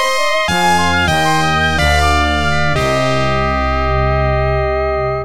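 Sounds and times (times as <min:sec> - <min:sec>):
fail sound: 0:00.1 - 0:05.2.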